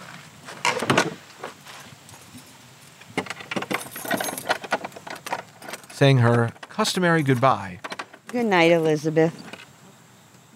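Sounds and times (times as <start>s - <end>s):
keys jangling while locking a door: 3.7s - 6.1s
speech: 6.0s - 9.4s.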